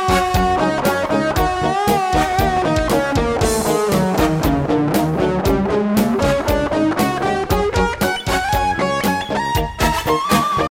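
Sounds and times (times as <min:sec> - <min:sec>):
rock music: 0:00.0 - 0:10.6.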